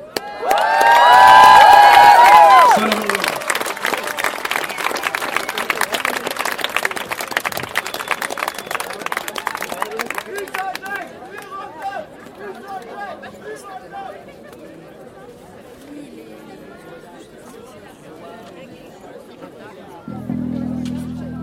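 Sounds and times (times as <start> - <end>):
audience applauding and cheering: 0.1 - 10.8.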